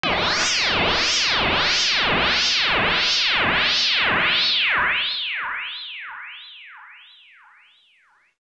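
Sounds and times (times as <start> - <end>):
ring modulated sound: 0.0 - 7.8.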